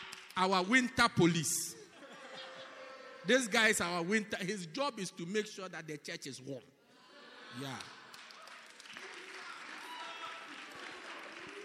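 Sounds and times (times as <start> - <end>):
audience clapping: 0.0 - 0.4, 7.6 - 11.6
speech: 0.4 - 1.8, 3.2 - 6.8, 7.5 - 8.0
laughter: 1.8 - 3.8.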